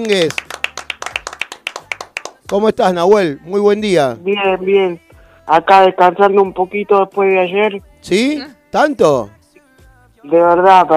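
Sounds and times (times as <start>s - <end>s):
speech: 0.0s - 0.4s, 2.5s - 9.4s, 10.2s - 10.9s
applause from people around the table: 0.0s - 2.8s.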